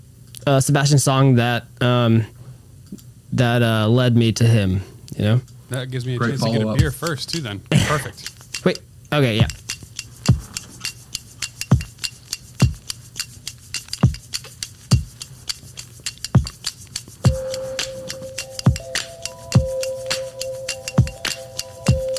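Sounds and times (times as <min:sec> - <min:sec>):
speech: 0:00.5 - 0:02.4, 0:03.3 - 0:09.6
hand clapping: 0:09.5 - 0:22.1.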